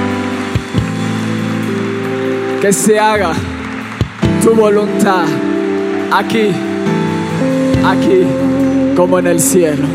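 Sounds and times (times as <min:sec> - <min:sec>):
audience applauding loudly: 0:00.0 - 0:07.5
speech: 0:02.6 - 0:03.5, 0:04.4 - 0:05.5, 0:06.1 - 0:06.7, 0:07.8 - 0:09.9.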